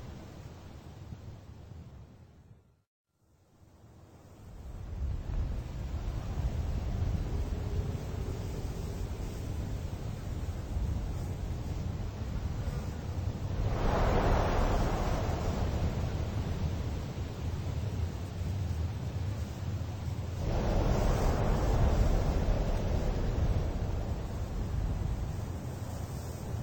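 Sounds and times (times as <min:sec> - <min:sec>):
desert ambience: 0:05.0 - 0:26.6.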